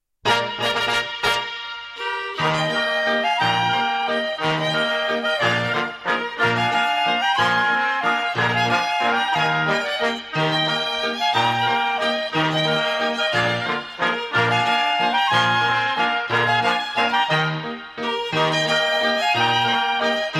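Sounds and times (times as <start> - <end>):
Tyrolean waltz from Austria: 0.3 - 20.3.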